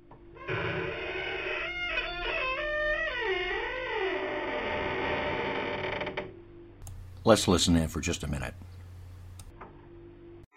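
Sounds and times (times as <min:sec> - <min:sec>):
door creaking open: 0:00.0 - 0:06.4
speech: 0:07.3 - 0:08.7.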